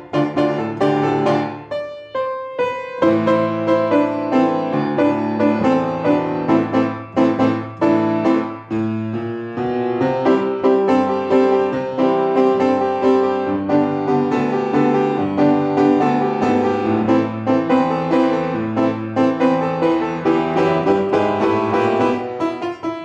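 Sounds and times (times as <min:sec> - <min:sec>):
tango piano backing track: 0:00.0 - 0:23.0.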